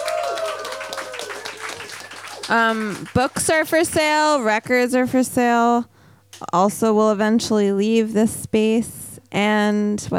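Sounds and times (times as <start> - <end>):
audience applause: 0.0 - 4.2
speech: 2.5 - 10.1.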